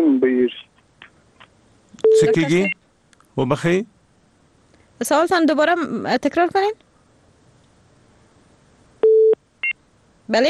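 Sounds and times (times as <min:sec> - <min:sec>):
phone busy tone after a call disconnects: 0:02.0 - 0:02.8, 0:09.0 - 0:09.4
speech: 0:02.2 - 0:02.8, 0:03.4 - 0:04.0, 0:05.0 - 0:06.8, 0:10.3 - 0:10.4.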